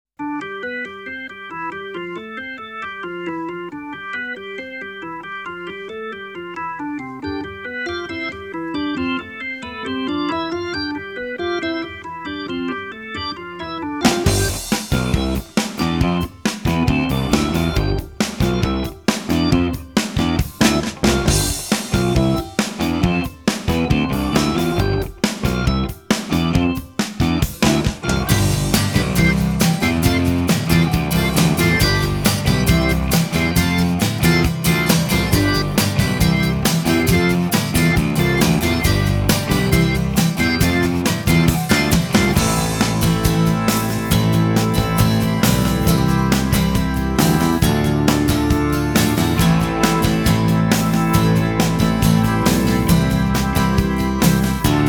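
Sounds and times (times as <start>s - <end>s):
fruity organ: 0.2s - 54.8s.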